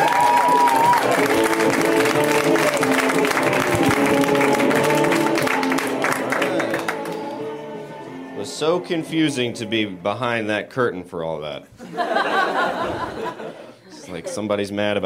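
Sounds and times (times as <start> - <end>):
comedy club audience applause as a stand-up comedian is introduced: 0.0 - 7.5
speech: 8.8 - 15.0
laughter: 11.8 - 14.5.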